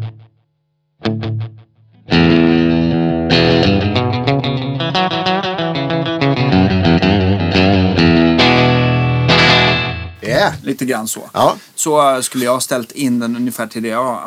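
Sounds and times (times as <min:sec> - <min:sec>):
electric guitar with delay pedal repeats: 0:01.0 - 0:10.2
speech: 0:10.8 - 0:14.2.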